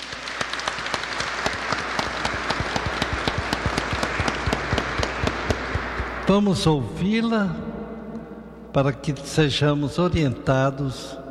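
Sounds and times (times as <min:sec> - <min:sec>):
audience applause: 0:00.0 - 0:06.8
speech: 0:06.3 - 0:07.6, 0:08.7 - 0:11.2.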